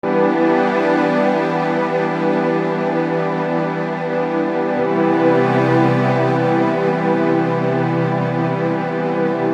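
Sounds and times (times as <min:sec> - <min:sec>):
string instrument: 0:00.0 - 0:09.5.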